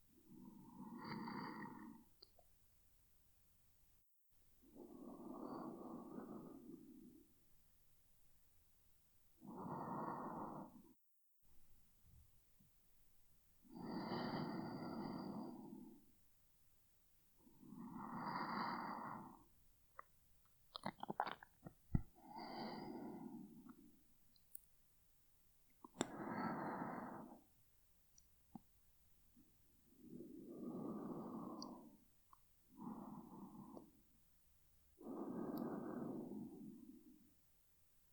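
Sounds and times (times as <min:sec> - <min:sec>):
person breathing in sleep: 0:00.2 - 0:02.2, 0:04.6 - 0:07.4, 0:09.4 - 0:11.0, 0:13.7 - 0:16.1, 0:17.4 - 0:19.6, 0:22.0 - 0:23.9, 0:26.0 - 0:27.6, 0:29.8 - 0:32.1, 0:32.7 - 0:34.1, 0:35.0 - 0:37.4.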